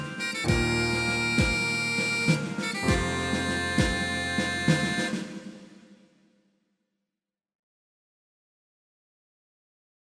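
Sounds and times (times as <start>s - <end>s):
bagpipes: 0.0s - 5.5s.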